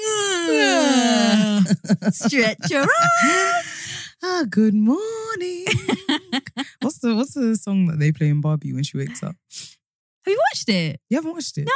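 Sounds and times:
yawn: 0.0 - 1.8
laughter: 1.1 - 3.6, 5.7 - 6.8
speech: 1.7 - 11.7.

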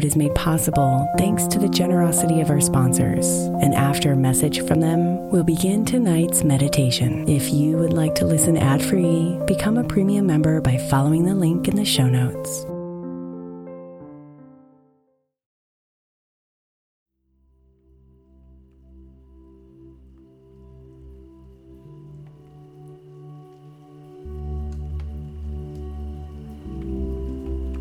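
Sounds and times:
gentle raindrops pattering: 0.0 - 12.6, 17.6 - 27.7
speech: 0.0 - 12.7.

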